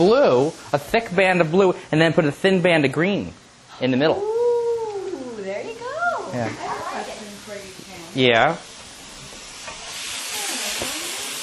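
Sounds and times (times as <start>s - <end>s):
mushrooms frying in a pan: 0.0s - 2.8s, 5.8s - 11.4s
speech: 0.0s - 4.4s, 6.3s - 8.7s.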